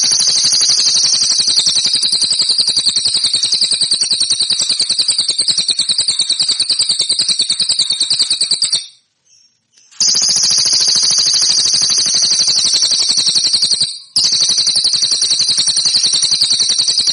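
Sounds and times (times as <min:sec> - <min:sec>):
cililin song metallic trill: 0:00.0 - 0:17.1.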